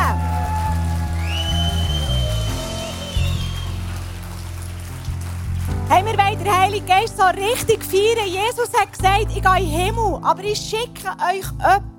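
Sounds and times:
audience applause: 0:00.0 - 0:06.8
speech: 0:06.0 - 0:11.9.

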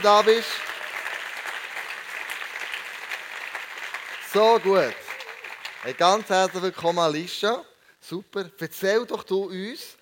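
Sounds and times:
speech: 0:00.0 - 0:00.7, 0:04.4 - 0:05.0, 0:05.8 - 0:10.0
applause: 0:00.0 - 0:06.9.

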